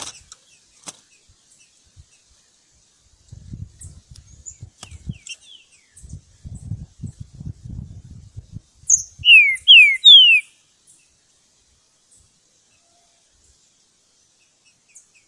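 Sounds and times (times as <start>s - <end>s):
Green-winged Saltator whistled song recorded in the bush: 8.9s - 10.5s.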